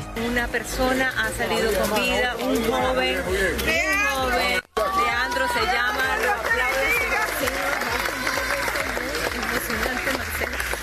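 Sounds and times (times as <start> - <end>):
speech: 0.2 - 4.6
applause after rescue from rubble in San Bernardino, Caracas: 4.8 - 10.8.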